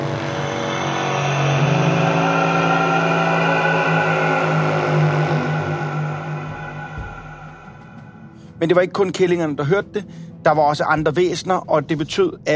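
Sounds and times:
loud metallic horn blast: 0:00.0 - 0:08.6
speech: 0:08.6 - 0:12.5.

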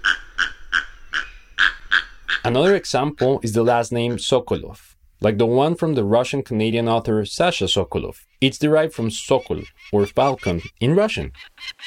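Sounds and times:
heron croaking calls: 0:00.0 - 0:04.2, 0:08.3 - 0:11.8
speech: 0:02.4 - 0:11.8.

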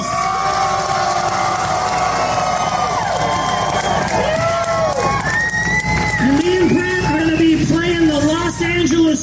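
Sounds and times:
crowd applause: 0:00.0 - 0:09.0.

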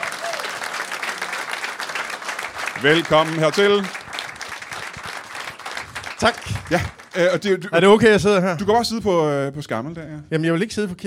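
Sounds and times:
audience applause welcoming the next guest: 0:00.0 - 0:07.8
speech: 0:02.8 - 0:04.0, 0:06.2 - 0:11.0.

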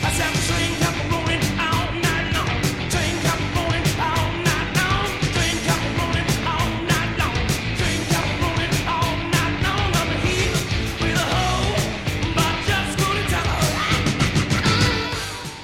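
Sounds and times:
pounding drums and crashing cymbals: 0:00.0 - 0:15.6
rock guitar riff: 0:00.0 - 0:15.6.

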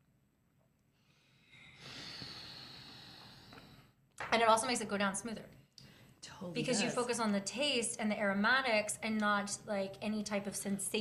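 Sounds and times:
ujjayi yoga breathing: 0:01.1 - 0:03.9
speech: 0:04.4 - 0:05.6, 0:06.4 - 0:11.0.

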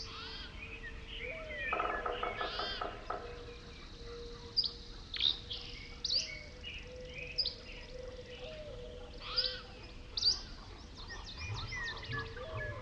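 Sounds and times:
birds calling and chirping at Pipestone Canyon in Eastern Washington: 0:00.0 - 0:12.8.

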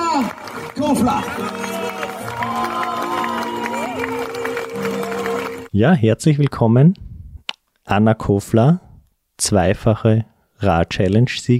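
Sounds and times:
cheering: 0:00.0 - 0:05.7
crowd applause: 0:00.0 - 0:05.7
speech: 0:00.8 - 0:01.6, 0:05.8 - 0:07.1, 0:07.9 - 0:08.8, 0:09.4 - 0:11.5.

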